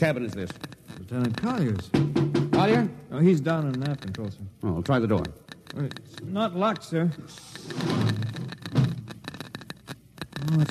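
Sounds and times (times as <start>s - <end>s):
speech: 0.0s - 8.2s, 10.4s - 10.6s
Geiger counter clicking: 0.0s - 10.6s.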